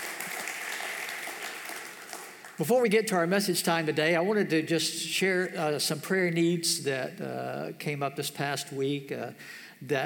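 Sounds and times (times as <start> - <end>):
audience applause: 0.0 - 2.6
speech: 2.6 - 10.0.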